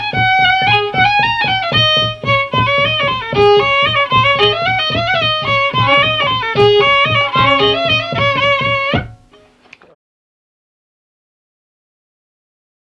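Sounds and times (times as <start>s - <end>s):
baroque dance piece: 0.0s - 10.0s.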